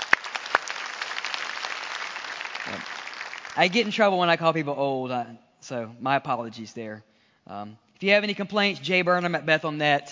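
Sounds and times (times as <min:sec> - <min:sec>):
audience hand clapping applause: 0:00.0 - 0:04.0
speech: 0:02.7 - 0:03.0, 0:03.6 - 0:10.0.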